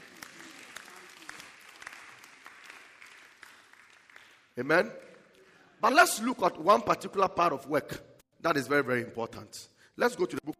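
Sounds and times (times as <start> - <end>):
group of people clapping hands: 0.0 - 6.2
speech: 4.6 - 5.1, 5.8 - 10.5.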